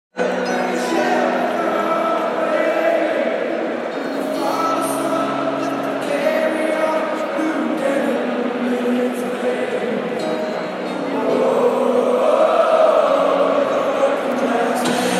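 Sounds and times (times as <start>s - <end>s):
93,000 people singing at the MCG: 0.2s - 15.1s.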